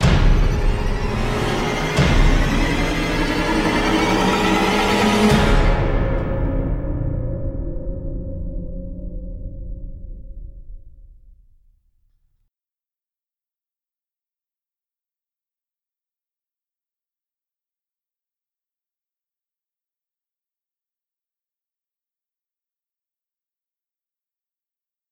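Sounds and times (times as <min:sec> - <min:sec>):
stinger for falling off a plane: 0:00.0 - 0:07.6.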